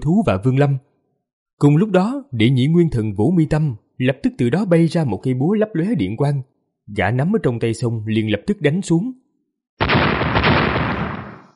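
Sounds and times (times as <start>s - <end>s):
speech: 0.0s - 0.9s, 1.6s - 9.2s
thunderous explosion sound effect: 9.8s - 11.5s.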